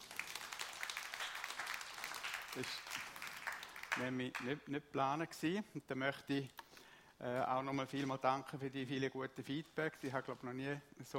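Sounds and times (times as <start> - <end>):
audience applause: 0.0 - 4.5
speech: 2.6 - 3.1, 4.0 - 6.6, 7.2 - 11.1.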